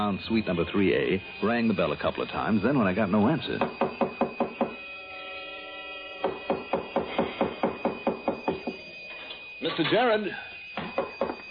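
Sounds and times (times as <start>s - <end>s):
speech: 0.0s - 4.0s, 9.8s - 10.5s
pounding on a door: 3.6s - 4.8s, 6.2s - 8.8s, 10.8s - 11.5s.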